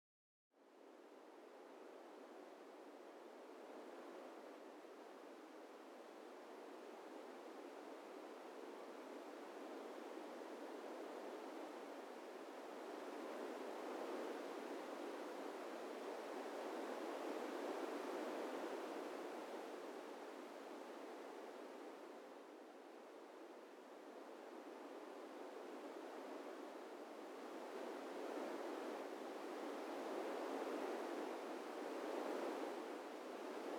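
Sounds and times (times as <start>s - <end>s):
wind: 0.6s - 33.7s.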